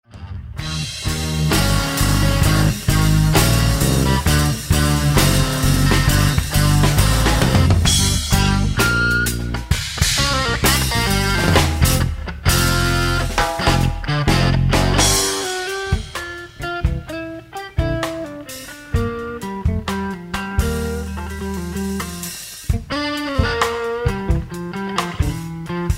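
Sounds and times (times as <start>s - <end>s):
heavy blues music: 0.1s - 25.9s.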